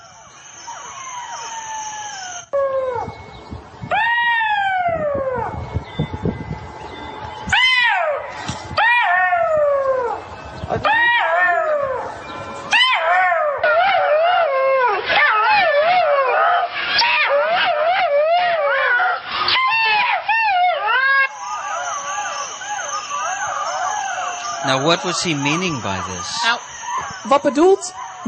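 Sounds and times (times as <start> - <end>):
jackal calls, howls, yips and wails: 0.0 - 5.9, 7.1 - 28.2
speech: 24.8 - 28.2.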